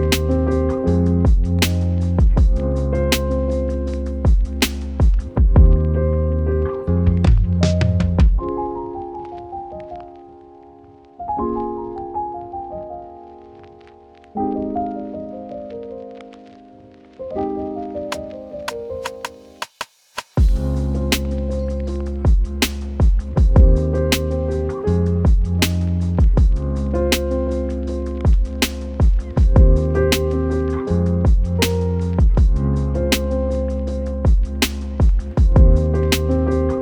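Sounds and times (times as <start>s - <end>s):
lo-fi hip hop piano: 0.0s - 19.7s, 20.4s - 36.8s.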